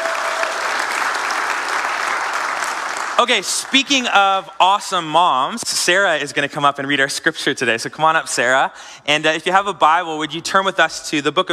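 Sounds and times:
audience applause: 0.0 - 4.0
speech: 3.2 - 11.5.

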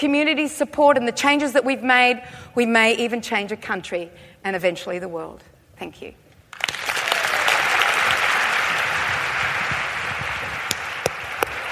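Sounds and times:
speech: 0.0 - 6.7
sustained applause from a large audience: 6.5 - 11.7.

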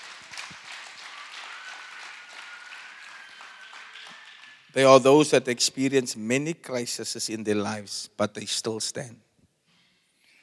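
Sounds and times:
audience applause: 0.0 - 4.8
speech: 4.7 - 9.3.

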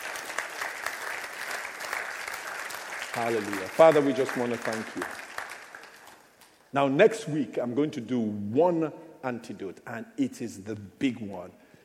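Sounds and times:
audience clapping: 0.0 - 6.7
speech: 3.2 - 5.2, 6.7 - 11.6.

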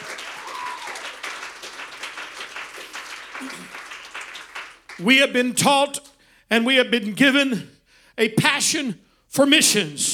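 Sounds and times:
audience clapping hands: 0.0 - 5.3
speech: 3.4 - 3.8, 5.0 - 10.1.

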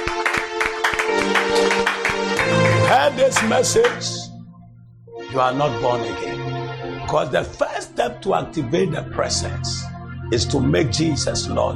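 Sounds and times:
audience clapping in rhythm: 0.0 - 4.3
speech: 3.1 - 4.2, 5.3 - 11.7.

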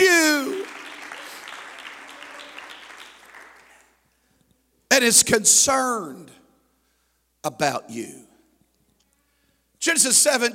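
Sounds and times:
audience applause: 0.0 - 4.0
speech: 5.0 - 6.4, 7.4 - 8.3, 9.8 - 10.5.

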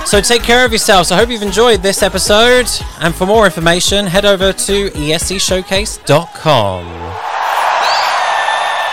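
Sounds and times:
speech: 0.1 - 7.3
audience applause: 7.2 - 8.8.

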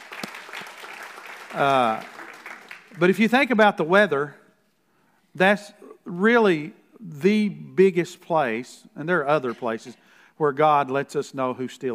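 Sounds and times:
audience clapping hands: 0.0 - 3.4
speech: 1.5 - 2.1, 2.9 - 4.4, 5.4 - 11.9.

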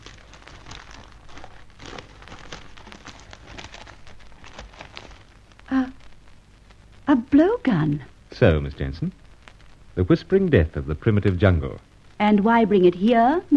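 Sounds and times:
wrapping crinkling as a package is unwrapped on a table: 0.0 - 6.9
speech: 7.1 - 9.2, 10.0 - 13.5.

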